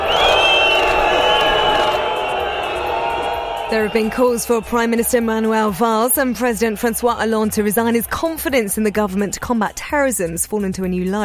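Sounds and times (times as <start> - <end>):
crowd booing French ministers arriving in Nice for a minute's silence: 0.0 - 8.0
speech: 3.7 - 11.2.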